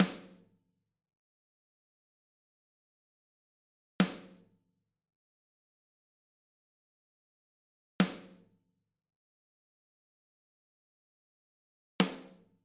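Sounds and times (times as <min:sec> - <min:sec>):
Vermona DSR 3 dry snare drum: 0:00.0 - 0:00.5, 0:04.0 - 0:04.5, 0:08.0 - 0:08.5, 0:12.0 - 0:12.5.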